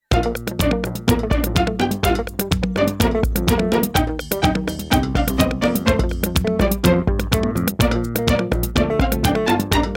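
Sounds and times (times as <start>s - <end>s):
little tune: 0.0s - 9.9s.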